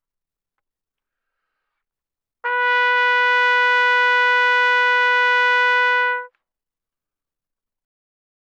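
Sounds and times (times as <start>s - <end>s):
trumpet notes C4 to B4 mezzo-forte without vibrato: 2.4s - 6.4s.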